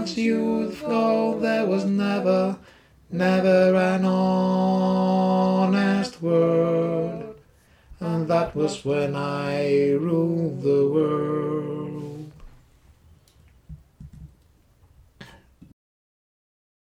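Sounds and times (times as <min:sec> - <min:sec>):
soprano singing: 0:00.0 - 0:07.4, 0:08.0 - 0:12.4.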